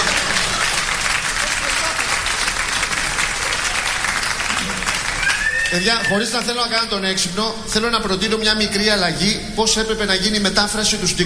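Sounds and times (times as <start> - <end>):
audience applause: 0.0 - 6.7
speech: 5.7 - 11.2.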